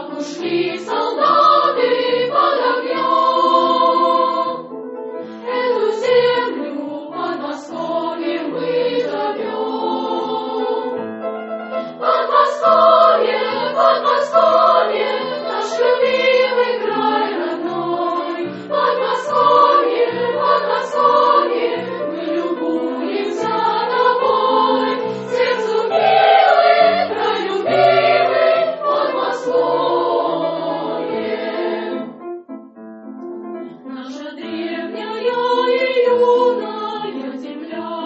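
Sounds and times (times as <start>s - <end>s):
senior school choir singing: 0.0s - 4.7s, 5.4s - 32.2s, 33.8s - 38.0s.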